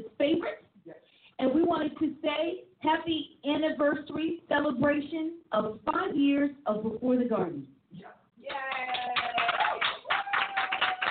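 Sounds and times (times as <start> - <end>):
speech: 2.4 - 8.1
voices cheering and calling out: 8.4 - 11.0
clapping: 8.5 - 11.0.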